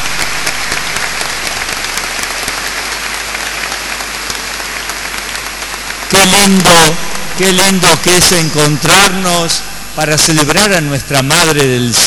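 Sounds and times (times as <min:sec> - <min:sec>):
crowd applause: 0:00.0 - 0:09.5
speech: 0:06.2 - 0:12.0.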